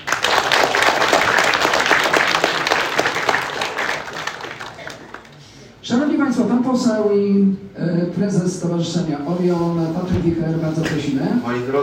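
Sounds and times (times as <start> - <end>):
audience applause: 0.0 - 5.5
speech: 5.9 - 11.8.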